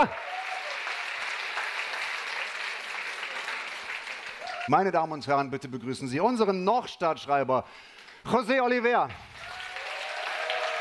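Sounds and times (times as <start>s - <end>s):
speech: 0.0s - 0.3s, 4.7s - 9.6s
audience cheering and applauding: 0.0s - 4.8s, 9.2s - 10.8s.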